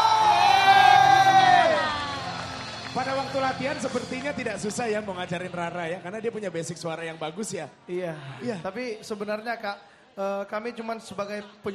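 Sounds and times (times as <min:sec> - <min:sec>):
audience applause: 0:00.0 - 0:05.0
speech: 0:03.3 - 0:11.7.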